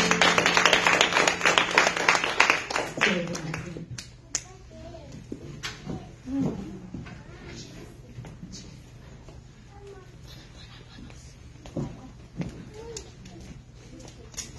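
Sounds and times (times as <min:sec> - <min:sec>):
audience applause: 0:00.0 - 0:04.0.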